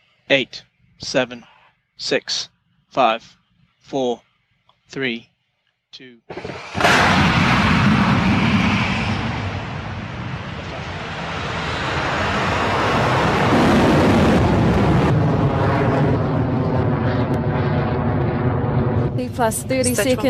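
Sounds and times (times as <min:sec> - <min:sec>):
speech: 0:00.3 - 0:04.3, 0:04.9 - 0:05.3, 0:06.0 - 0:06.6, 0:19.4 - 0:20.2
Rocket Lab Electron rocket liftoff with Rutherford engines roaring at Launch Complex 1: 0:06.3 - 0:20.2.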